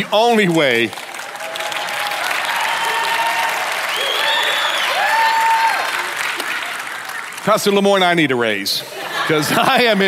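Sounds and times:
speech: 0:00.0 - 0:01.0, 0:07.4 - 0:10.0
audience applause: 0:00.0 - 0:08.2
whoops and cheers: 0:01.2 - 0:06.2
laughter: 0:08.8 - 0:10.0.

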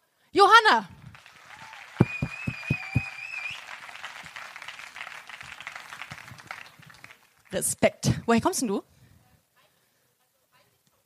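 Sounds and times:
speech: 0:00.4 - 0:01.0, 0:07.5 - 0:08.9
audience applause: 0:01.0 - 0:07.5.

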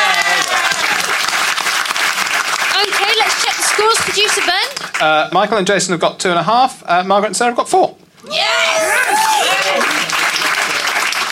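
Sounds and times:
audience applause: 0:00.0 - 0:05.1, 0:08.6 - 0:11.3
speech: 0:03.8 - 0:10.1.

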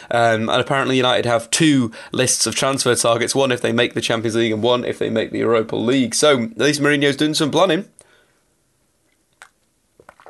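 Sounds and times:
speech: 0:00.0 - 0:08.0
sipping coffee: 0:09.4 - 0:10.2.

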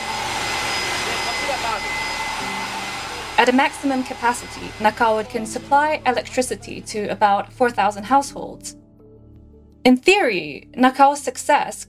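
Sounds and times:
steam turbine spinning at high speed: 0:00.0 - 0:06.3
speech: 0:03.4 - 0:08.8, 0:09.8 - 0:11.8.

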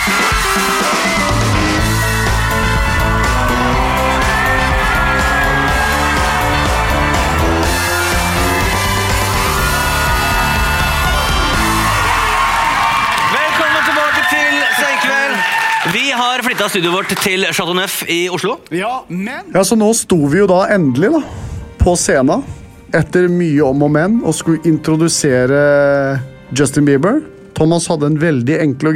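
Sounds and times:
crowd cheering and whooping: 0:00.0 - 0:17.3
scattered clapping: 0:12.2 - 0:17.6
speech: 0:16.6 - 0:28.9.

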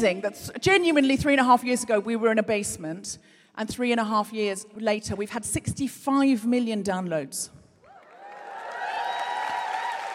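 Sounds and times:
speech: 0:00.0 - 0:07.6
audience cheering and applause: 0:07.9 - 0:10.1.

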